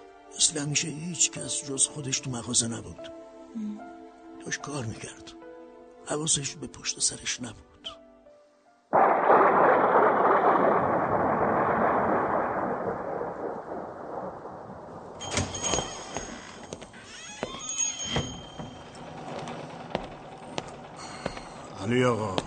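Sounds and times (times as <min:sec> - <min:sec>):
speech: 0:00.4 - 0:05.4, 0:06.0 - 0:08.0
heavy rain: 0:08.9 - 0:16.9, 0:18.9 - 0:22.4
thunder rumbling: 0:08.9 - 0:16.9, 0:18.8 - 0:22.4
sharp clatters and thumps: 0:15.2 - 0:22.4.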